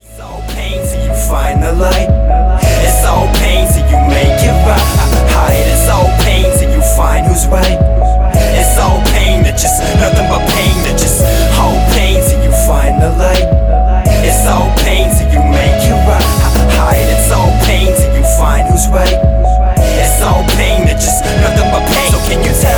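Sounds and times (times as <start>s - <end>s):
rap music: 0.0s - 22.7s.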